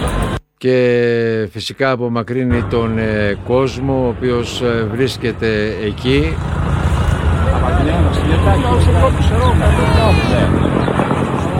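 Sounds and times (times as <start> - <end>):
speech: 0.6 - 6.7, 8.1 - 10.8
firefighting helicopter dropping water over fire: 4.8 - 11.5.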